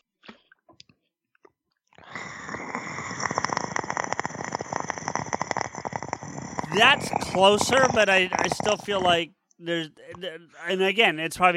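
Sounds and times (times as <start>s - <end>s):
voice imitating raspy mouth clicking: 0.2s - 10.3s
speech: 6.8s - 11.5s.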